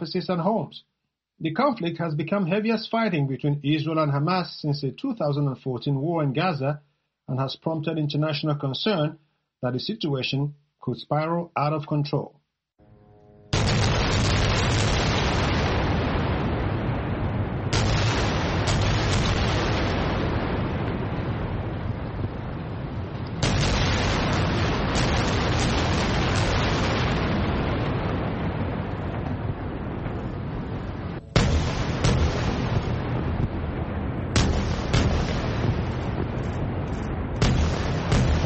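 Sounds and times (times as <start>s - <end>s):
speech: 0.0s - 12.4s
rocket barrage fired into Israeli territory roaring: 13.5s - 38.4s.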